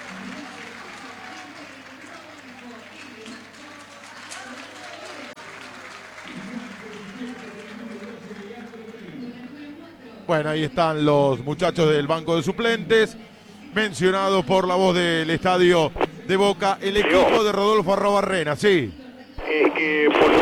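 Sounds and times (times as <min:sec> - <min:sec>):
large stadium crowd applauding: 0:00.0 - 0:09.4
speech: 0:10.3 - 0:20.3.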